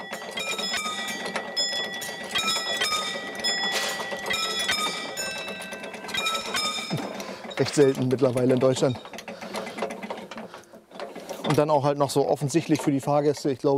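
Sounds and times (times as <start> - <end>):
railway level crossing warning bell: 0.0 - 10.1
railway level crossing barriers closing: 0.0 - 13.7
speech: 7.6 - 9.1, 11.5 - 13.7.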